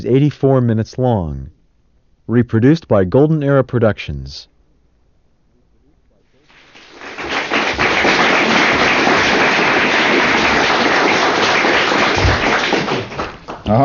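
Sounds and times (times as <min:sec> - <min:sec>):
speech: 0:00.0 - 0:01.6, 0:02.3 - 0:04.5, 0:13.7 - 0:13.8
audience applause: 0:06.5 - 0:13.8.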